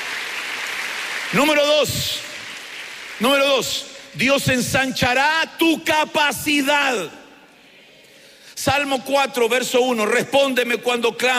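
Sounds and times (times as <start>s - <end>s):
audience clapping hands: 0.0s - 3.9s
speech: 1.3s - 2.3s, 3.2s - 7.2s, 8.6s - 11.3s.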